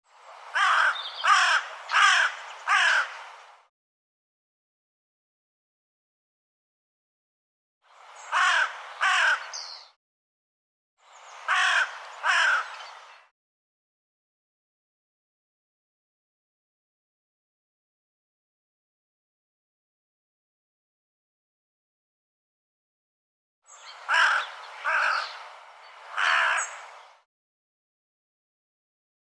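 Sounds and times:
bird giving harsh caw-like calls: 0.6 - 3.1, 8.3 - 9.8, 11.5 - 12.8, 23.9 - 25.4, 26.1 - 26.9.

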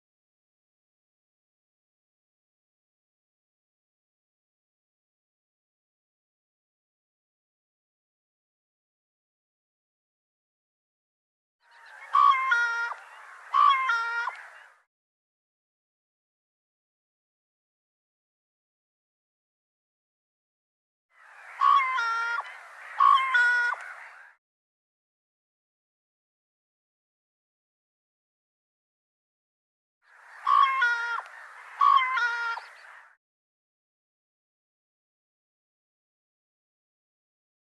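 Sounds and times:
bird nasal two-part calls: 11.6 - 14.8, 21.2 - 24.4, 30.1 - 33.2.

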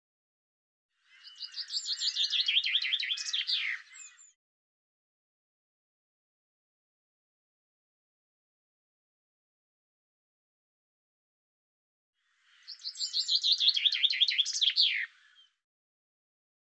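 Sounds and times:
bird singing: 1.0 - 4.4, 12.2 - 15.6.

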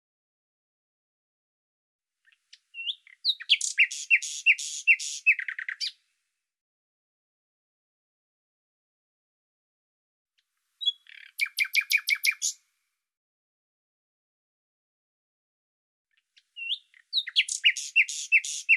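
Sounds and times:
bird song: 2.2 - 6.2, 10.8 - 12.7, 16.1 - 18.7.

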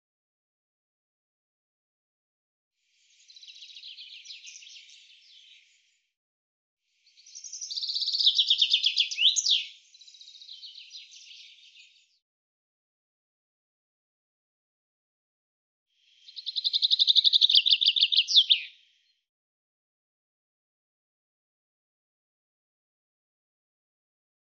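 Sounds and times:
bird song in rapid high trilled phrases: 3.0 - 6.0, 7.0 - 12.2, 16.1 - 19.2.

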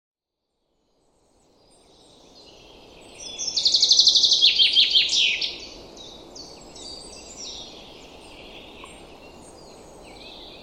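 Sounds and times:
common chaffinch song: 0.7 - 10.6.

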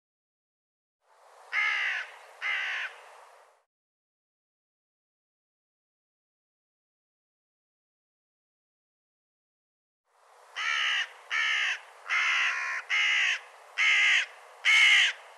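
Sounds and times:
bird cawing: 1.5 - 3.0, 10.5 - 15.3.

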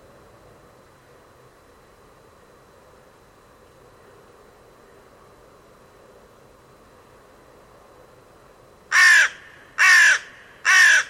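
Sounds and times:
bird giving harsh crow-like caws: 8.9 - 11.0.

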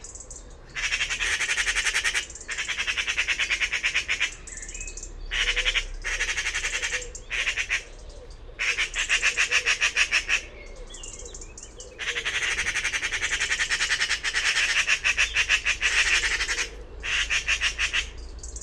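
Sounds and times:
bird calling with grating buzzy squawks: 0.7 - 4.4, 5.3 - 7.9, 8.6 - 10.5, 12.0 - 18.2.

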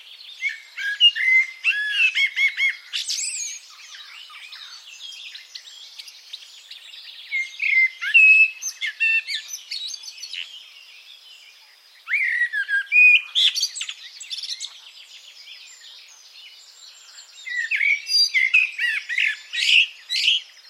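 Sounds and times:
bird singing a fast varied warble: 0.0 - 20.6.

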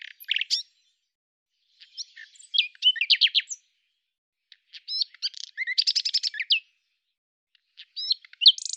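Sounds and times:
common nightingale song: 0.0 - 7.0, 7.6 - 8.7.

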